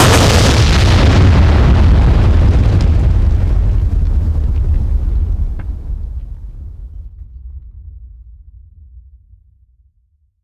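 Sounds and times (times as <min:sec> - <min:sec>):
explosions on the ground: 0:00.0 - 0:07.2.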